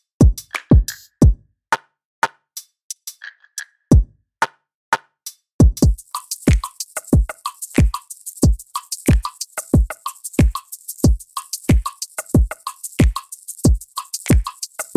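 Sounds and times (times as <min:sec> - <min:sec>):
drums: 0:00.2 - 0:01.4, 0:03.9 - 0:04.1, 0:05.6 - 0:14.9.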